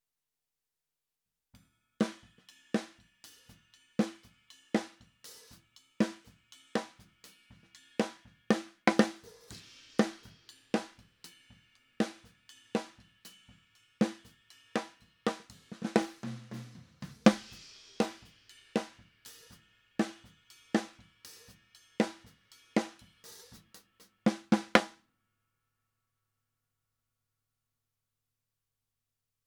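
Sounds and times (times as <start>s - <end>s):
snare drum: 2.0s - 3.0s, 4.0s - 6.2s, 8.0s - 11.1s, 14.0s - 25.0s.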